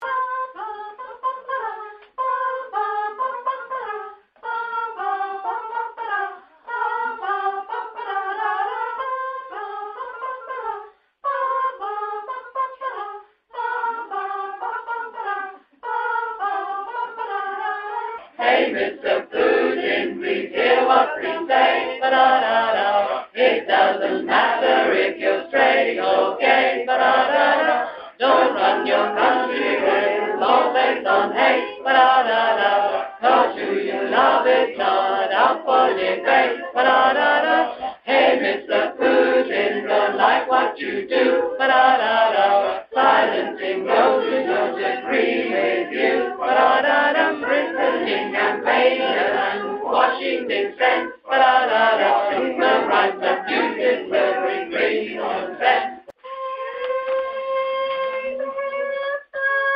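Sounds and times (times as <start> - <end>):
soprano singing: 0.0 - 59.7.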